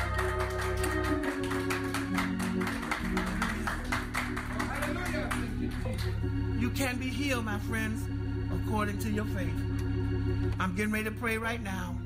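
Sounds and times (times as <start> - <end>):
audience hand clapping: 0.0 - 6.3
speech: 6.8 - 8.1, 8.7 - 11.9.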